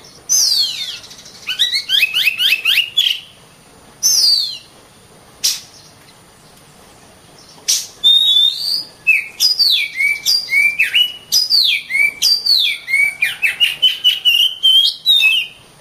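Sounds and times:
oriental magpie-robin singing: 0.0 - 3.4, 4.0 - 4.7, 7.3 - 15.7.

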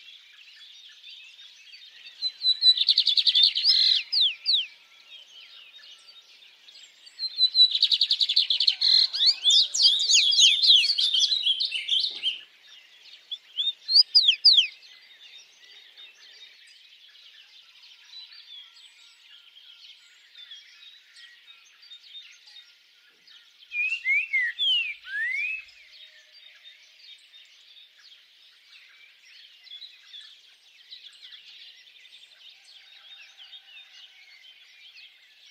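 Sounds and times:
bird song: 0.0 - 35.5.

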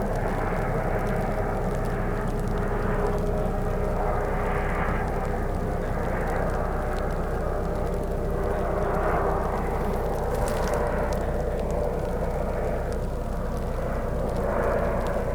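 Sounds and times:
frogs croaking chorus: 0.2 - 15.3.

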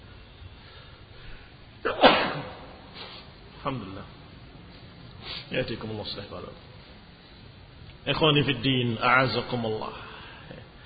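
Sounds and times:
sneeze: 1.8 - 3.3
speech: 3.6 - 4.2, 5.5 - 6.7, 8.0 - 10.6.

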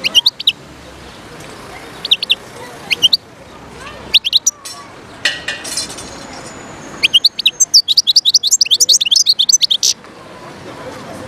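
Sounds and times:
wild European goldfinch singing: 0.0 - 0.6, 1.9 - 3.2, 4.1 - 4.6, 6.8 - 10.0.

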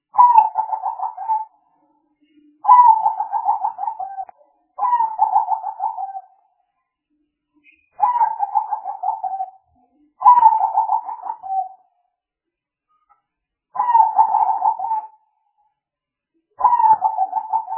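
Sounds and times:
spotted dove cooing: 0.2 - 1.5, 2.7 - 6.3, 8.0 - 9.6, 10.2 - 11.8, 13.8 - 15.2, 16.6 - 17.7.

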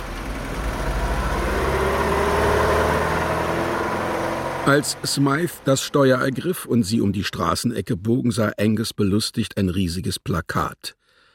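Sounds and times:
fast small car engine running: 0.0 - 5.6
speech: 4.7 - 11.0.

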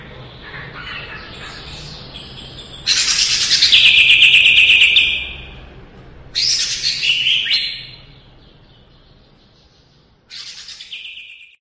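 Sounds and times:
leafbird singing: 0.0 - 5.7, 6.3 - 11.5.

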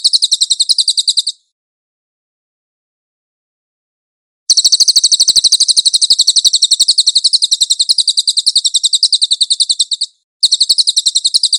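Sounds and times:
Cililin song, high trill: 0.0 - 1.4, 4.5 - 11.5.

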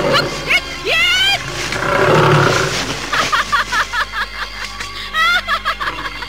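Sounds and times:
male tiger roaring and snarling: 0.0 - 0.6, 1.4 - 3.3
laughter: 0.0 - 1.4, 2.6 - 6.2.

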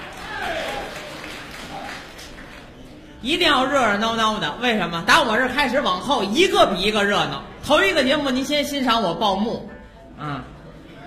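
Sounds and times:
thin scattered clapping from a live audience: 0.0 - 3.0
speech: 3.2 - 10.5.

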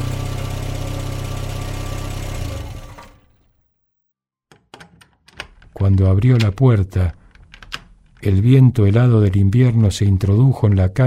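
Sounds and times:
car engine rumbling as a car pulls up: 0.0 - 3.5
speech: 5.8 - 7.2, 8.2 - 11.0.

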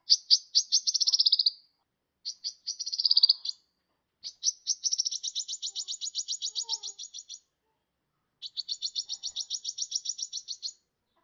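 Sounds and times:
sunbird twittering with whistled and ticking notes: 0.0 - 1.6, 2.2 - 7.5, 8.4 - 10.9.

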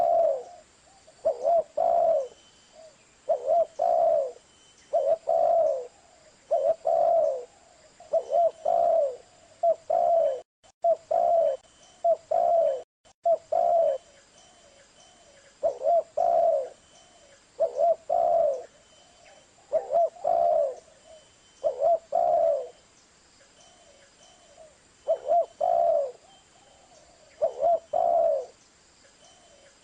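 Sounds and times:
spotted dove cooing: 0.0 - 22.8, 23.7 - 28.6.

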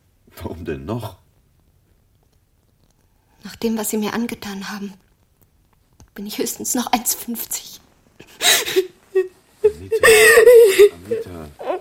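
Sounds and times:
speech: 0.4 - 1.2, 3.6 - 5.1, 6.2 - 7.8
person sobbing and whimpering in a film scene: 8.4 - 11.2.

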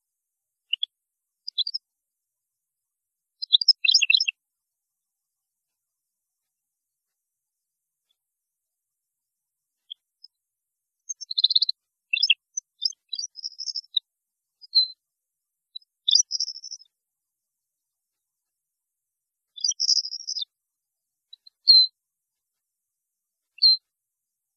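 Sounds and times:
European goldfinch song: 0.7 - 1.8, 3.4 - 4.4, 11.1 - 14.0, 14.6 - 15.0, 15.8 - 16.9, 19.6 - 20.5.

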